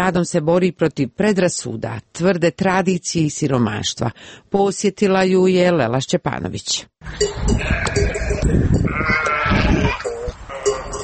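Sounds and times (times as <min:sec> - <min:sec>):
speech: 0:00.0 - 0:10.0
sheep bleating from a flock of 200 on a Montenegro livestock farm: 0:07.5 - 0:11.0.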